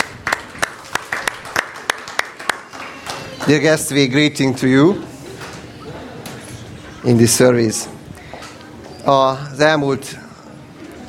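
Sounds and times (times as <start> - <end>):
audience applause: 0.0 - 4.0
speech: 3.5 - 5.1, 7.0 - 8.0, 9.0 - 10.2.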